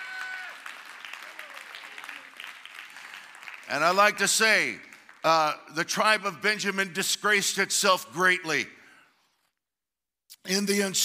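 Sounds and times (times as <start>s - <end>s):
audience hand clapping in praise: 0.0s - 5.8s
speech: 3.7s - 8.8s, 10.4s - 11.0s.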